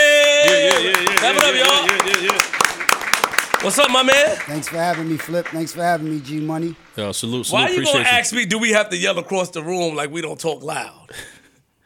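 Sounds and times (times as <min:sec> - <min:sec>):
small round of applause: 0:00.0 - 0:07.0
speech: 0:00.8 - 0:02.6, 0:03.6 - 0:11.4.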